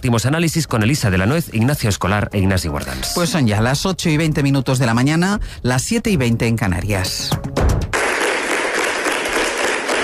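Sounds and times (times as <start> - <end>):
speech: 0.0 - 7.6
applause in council chamber: 7.9 - 10.0.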